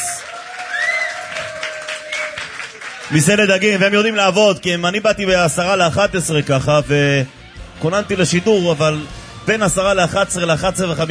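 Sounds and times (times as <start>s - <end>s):
audience applause for a fish taverna restaurant: 0.0s - 4.5s
speech: 3.1s - 11.1s.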